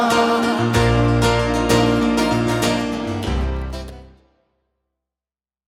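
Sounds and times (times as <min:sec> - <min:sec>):
French band playing: 0:00.1 - 0:04.1.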